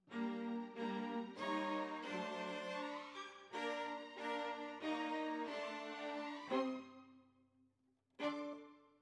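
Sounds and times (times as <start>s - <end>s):
violas: 0.1s - 7.0s.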